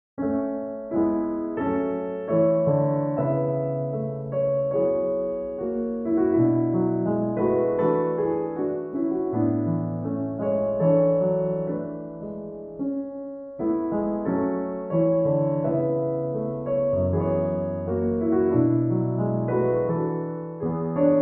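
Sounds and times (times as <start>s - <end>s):
solo piano: 0.2s - 21.2s.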